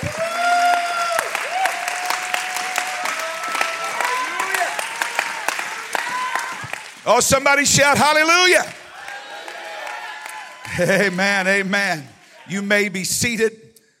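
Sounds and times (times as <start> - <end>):
audience clapping hands: 0.0 - 13.0
speech: 7.1 - 8.8, 10.8 - 13.6.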